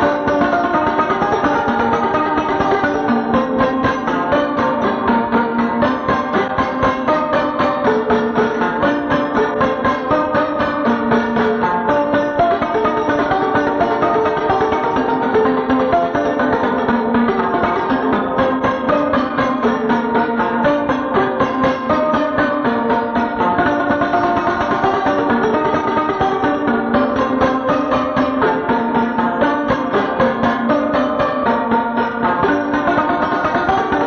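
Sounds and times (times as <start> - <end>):
oberek folk dance music: 0.0 - 34.0.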